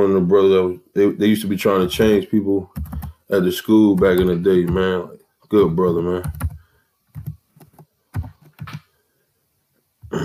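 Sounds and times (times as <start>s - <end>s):
speech: 0.0s - 6.4s
typing a name on a computer keyboard: 2.7s - 3.2s, 3.9s - 4.9s, 6.2s - 8.9s.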